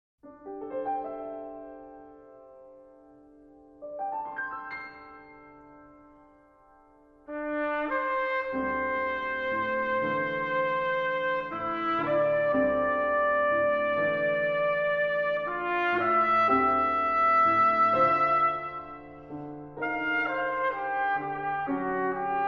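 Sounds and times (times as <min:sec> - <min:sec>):
piano playing slowly in a sonata: 0:00.2 - 0:22.4
trumpet playing slowly in a sonata: 0:07.2 - 0:22.4.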